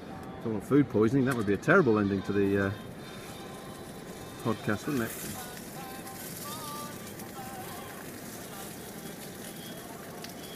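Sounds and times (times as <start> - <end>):
speech: 0.4 - 2.9, 4.4 - 5.5
stuffing patties frying in a pan: 2.4 - 10.5.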